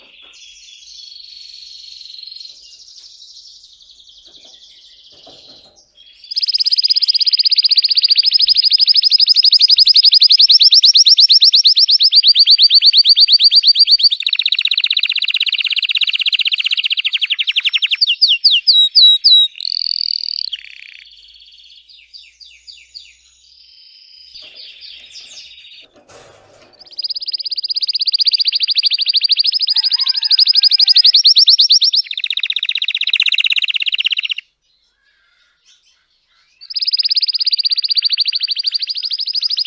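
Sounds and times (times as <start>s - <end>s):
Belgian red frosted canary singing: 0.0s - 25.9s, 26.6s - 39.6s.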